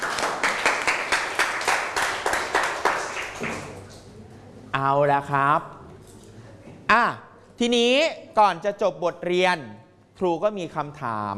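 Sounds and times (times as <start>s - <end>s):
group of students clapping in a steady rhythm: 0.0s - 4.0s
speech: 4.8s - 5.8s, 6.9s - 11.3s.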